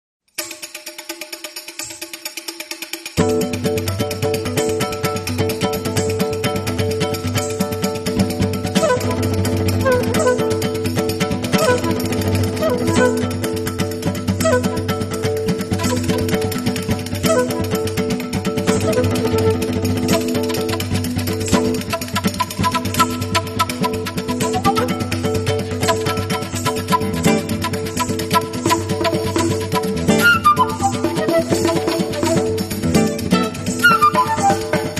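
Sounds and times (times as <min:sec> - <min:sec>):
gypsy samba music: 0:00.4 - 0:34.9.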